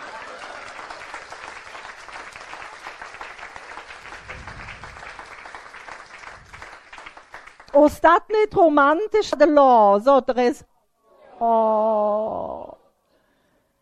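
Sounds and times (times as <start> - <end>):
audience applause: 0.0 - 7.7
speech: 7.8 - 10.7, 11.4 - 12.7.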